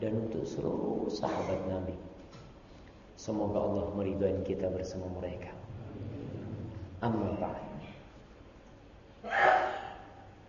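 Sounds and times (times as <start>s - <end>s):
speech: 0.0s - 2.3s, 3.2s - 6.1s, 7.0s - 7.7s
person sneezing in the audience: 9.2s - 10.2s.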